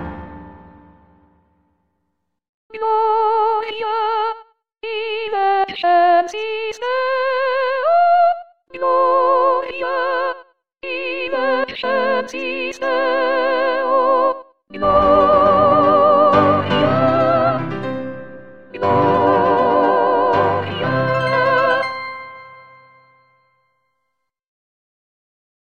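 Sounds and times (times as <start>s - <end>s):
soprano singing: 2.7s - 22.9s.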